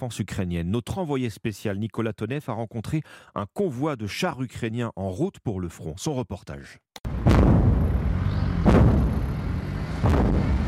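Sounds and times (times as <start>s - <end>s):
speech: 0.0s - 7.5s
incoming shell explosions: 7.1s - 8.0s, 8.6s - 9.2s, 10.0s - 10.6s
artillery fire: 7.1s - 9.3s, 9.9s - 10.6s.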